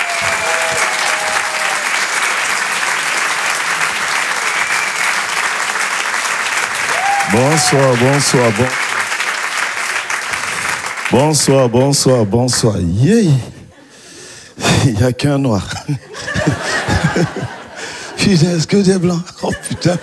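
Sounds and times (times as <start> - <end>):
laughter: 0.0 - 8.9, 13.3 - 20.0
audience applause: 0.0 - 12.8
speech: 7.4 - 8.8, 11.1 - 13.6, 14.8 - 16.5, 17.2 - 17.5, 18.2 - 20.0.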